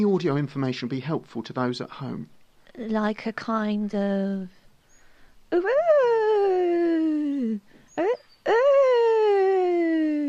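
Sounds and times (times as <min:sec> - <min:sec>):
speech: 0:00.0 - 0:04.6, 0:05.5 - 0:06.0
person imitating an owl hooting: 0:05.5 - 0:10.2.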